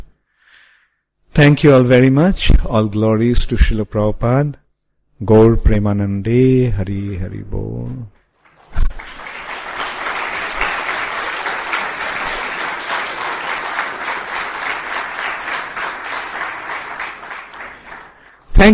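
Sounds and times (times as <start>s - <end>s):
speech: 1.4s - 4.6s, 5.2s - 8.2s, 18.6s - 18.7s
audience clapping: 8.4s - 18.7s.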